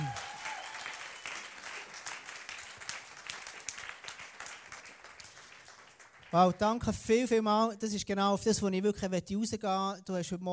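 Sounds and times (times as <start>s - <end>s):
applause: 0.0s - 6.9s
speech: 6.3s - 10.5s.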